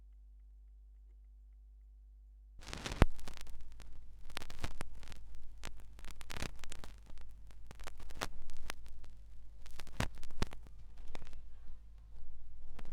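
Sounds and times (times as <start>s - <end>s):
vinyl record noise: 2.6s - 12.9s.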